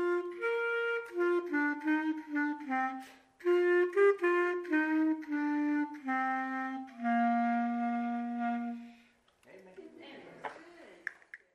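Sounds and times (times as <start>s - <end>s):
instrumental music: 0.0s - 9.2s.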